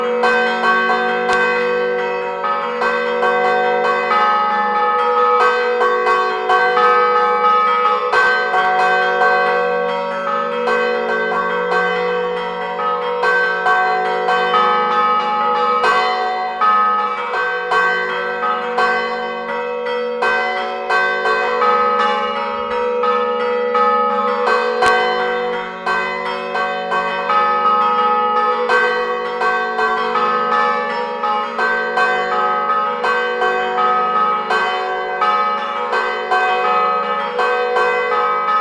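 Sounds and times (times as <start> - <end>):
church bells ringing at Rezzo Sanctuary in Imperia Liguria: 0.0 - 38.5.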